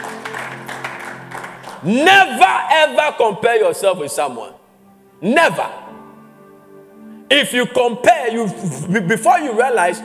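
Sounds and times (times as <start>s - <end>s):
audience clapping: 0.0s - 2.1s
speech: 1.8s - 4.6s, 5.2s - 5.8s, 7.3s - 10.0s.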